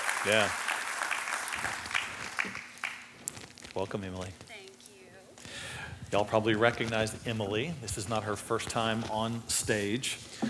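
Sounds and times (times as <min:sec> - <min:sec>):
audience applause as a speaker comes up to the stage: 0:00.0 - 0:03.1
speech: 0:00.2 - 0:00.6, 0:02.4 - 0:02.7, 0:03.8 - 0:04.4, 0:06.1 - 0:10.3.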